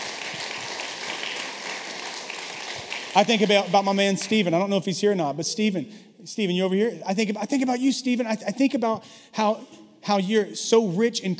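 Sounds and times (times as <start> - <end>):
audience clapping: 0.0 - 4.5
speech: 3.1 - 11.3.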